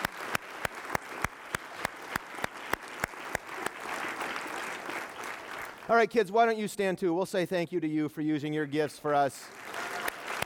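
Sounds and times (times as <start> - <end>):
audience applause: 0.0 - 6.1, 9.5 - 10.4
speech: 5.9 - 9.6.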